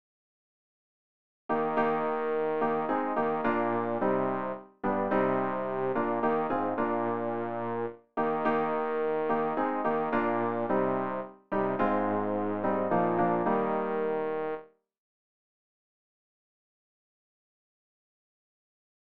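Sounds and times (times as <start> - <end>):
bass practice aid: 2.1 - 14.6.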